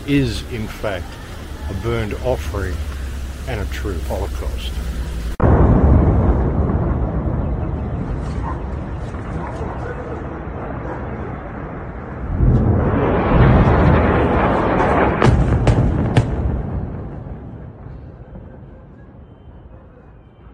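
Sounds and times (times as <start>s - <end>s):
bombs dropped by Israel exploding in Lebanon: 0.0s - 19.4s
speech: 0.1s - 5.2s.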